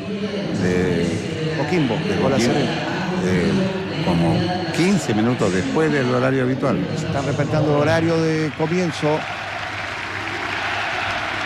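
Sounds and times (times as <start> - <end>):
speech: 0.2 - 0.5, 1.7 - 9.4
Unión La Calera football fans clapping in the stands during a minute of respect: 7.3 - 11.4.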